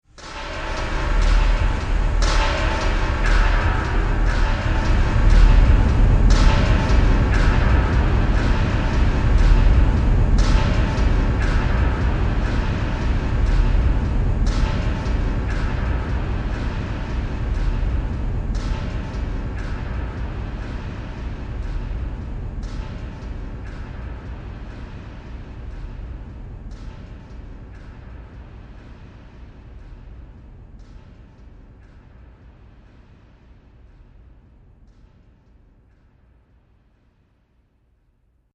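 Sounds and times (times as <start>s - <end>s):
scary fantasy soundscape: 0.2s - 29.9s.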